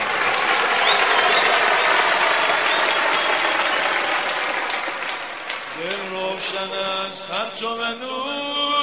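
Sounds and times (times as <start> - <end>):
crowd clapping: 0.0 - 7.6
speech: 6.4 - 8.7.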